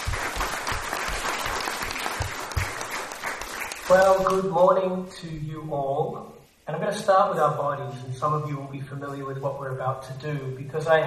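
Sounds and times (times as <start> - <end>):
conference audience applauding a speaker: 0.0 - 4.4
speech: 3.9 - 11.0.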